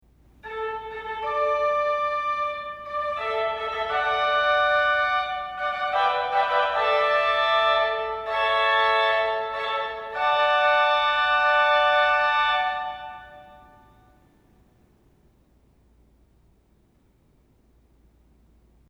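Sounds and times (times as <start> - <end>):
fanfare: 0.4 - 14.0.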